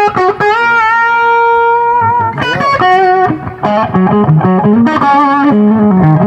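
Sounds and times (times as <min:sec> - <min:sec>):
electric guitar through amp overdrive channel distortion: 0:00.0 - 0:06.2.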